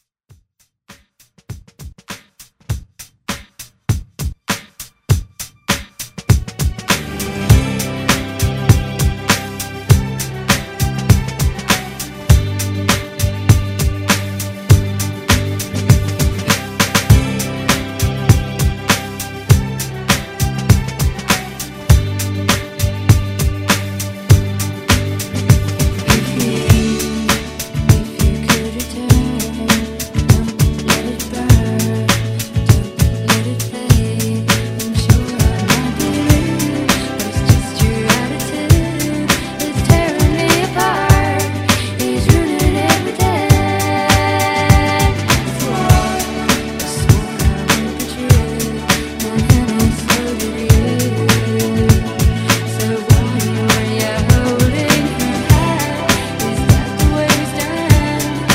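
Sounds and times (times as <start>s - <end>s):
90s rock drum beat: 0.9s - 58.5s.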